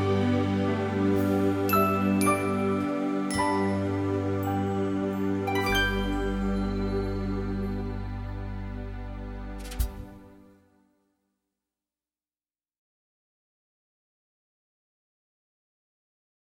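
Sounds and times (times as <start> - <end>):
SATB choir singing a Christmas song: 0.0 - 10.4.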